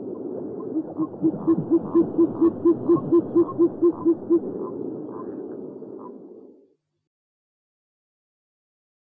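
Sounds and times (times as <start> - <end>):
owl hooting: 0.6 - 6.2.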